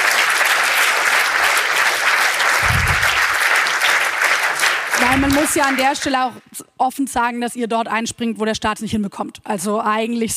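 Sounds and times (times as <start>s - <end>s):
audience applause: 0.0s - 6.3s
speech: 5.1s - 10.3s.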